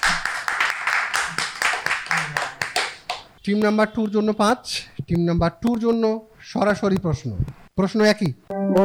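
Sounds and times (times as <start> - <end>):
audience clapping for a quiz team: 0.0 - 3.4
speech: 3.4 - 8.8.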